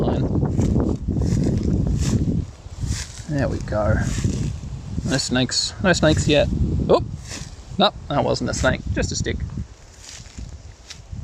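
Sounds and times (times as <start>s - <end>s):
footsteps stomping through long grass: 0.3s - 11.2s
speech: 3.3s - 4.3s, 5.1s - 7.1s, 7.8s - 9.6s.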